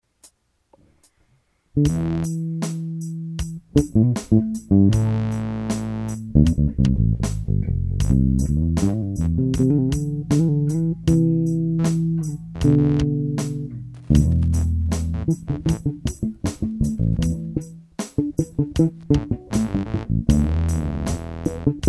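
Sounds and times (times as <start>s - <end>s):
psychedelic music interlude: 1.8s - 21.8s.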